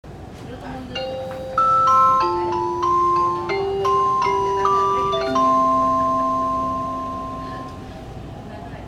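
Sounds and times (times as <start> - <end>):
chime: 1.6 - 7.7.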